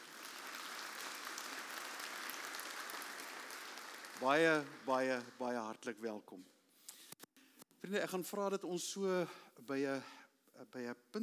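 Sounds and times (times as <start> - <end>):
church audience at a morning service clapping for grandparents: 0.0 - 5.9
speech: 4.2 - 6.6, 7.8 - 11.2.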